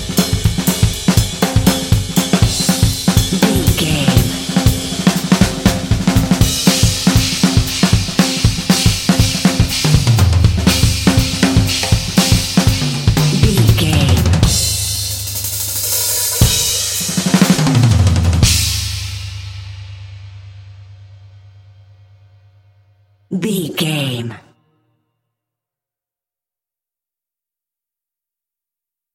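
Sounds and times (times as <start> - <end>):
drumming: 0.0 - 19.6.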